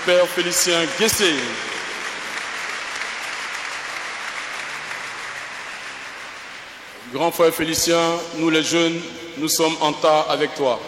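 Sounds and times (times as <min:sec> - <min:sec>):
speech: 0:00.0 - 0:01.8, 0:07.1 - 0:10.8
audience applause: 0:00.0 - 0:07.0.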